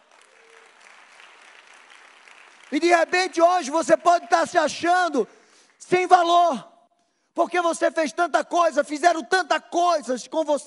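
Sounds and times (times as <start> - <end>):
audience applause: 0.0 - 5.7
speech: 2.7 - 6.7, 7.4 - 10.6.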